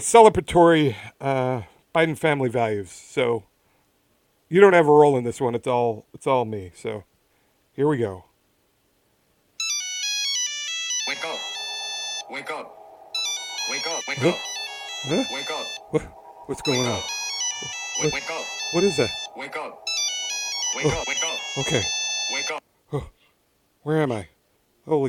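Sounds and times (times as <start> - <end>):
speech: 0.0 - 3.5, 4.5 - 7.1, 7.8 - 8.3, 14.0 - 19.9, 20.7 - 23.2, 23.8 - 25.0
phone musical ringtone for an incoming call: 9.6 - 22.6
vocal sounds: 11.1 - 23.1.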